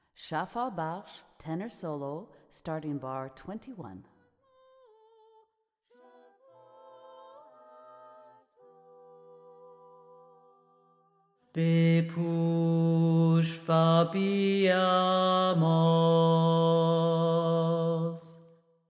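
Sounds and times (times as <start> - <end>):
solo choral music: 5.9 - 18.6.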